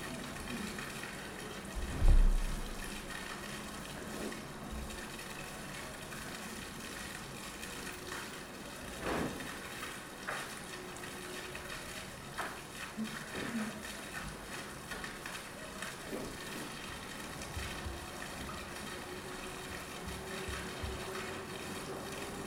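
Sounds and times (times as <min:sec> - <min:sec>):
water running in a fountain: 0:00.0 - 0:22.4
low thump: 0:01.8 - 0:02.6.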